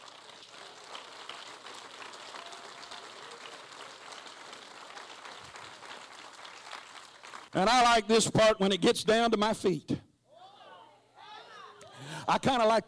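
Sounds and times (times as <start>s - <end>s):
crowd clapping: 0.0s - 8.0s
speech: 7.6s - 10.0s, 12.3s - 12.8s.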